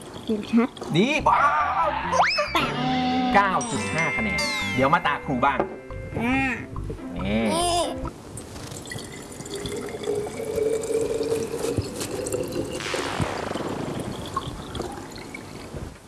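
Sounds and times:
water being poured into a container: 0.0 - 1.3, 8.7 - 15.8
speech: 0.2 - 7.8.

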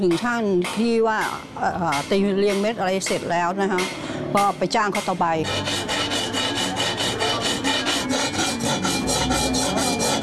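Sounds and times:
speech: 0.0 - 5.8
metal file rasping a piece by hand: 5.0 - 10.2.

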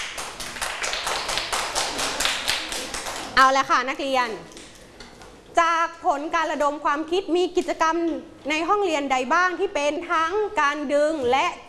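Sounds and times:
students clapping hands: 0.0 - 3.6
speech: 3.4 - 4.6, 5.6 - 11.6.

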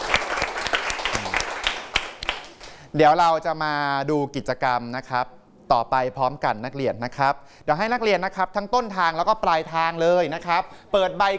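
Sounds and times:
classroom applause for a student: 0.0 - 2.8
speech: 2.9 - 11.3.

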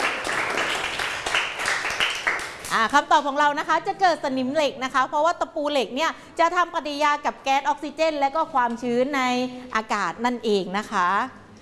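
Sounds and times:
classroom applause: 0.0 - 2.8
speech: 2.7 - 11.4.

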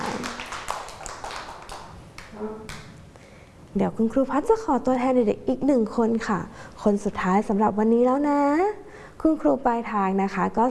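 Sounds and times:
children clapping: 0.0 - 3.0
speech: 3.7 - 10.6.

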